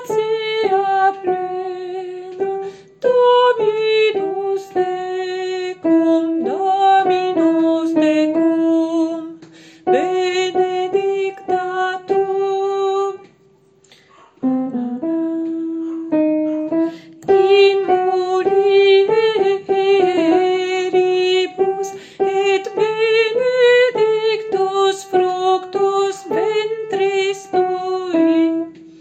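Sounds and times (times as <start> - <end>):
soprano singing: 0.0 - 13.3, 14.4 - 28.8.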